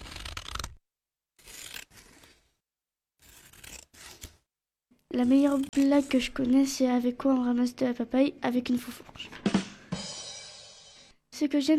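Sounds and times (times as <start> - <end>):
scissors cutting paper: 0.0 - 0.8, 1.4 - 2.5, 3.2 - 4.4, 5.0 - 6.7
speech: 5.2 - 9.4, 11.4 - 11.7.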